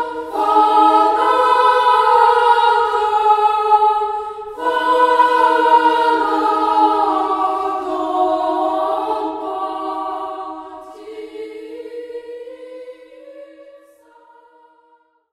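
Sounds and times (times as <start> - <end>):
children's choir singing: 0.0 - 15.0.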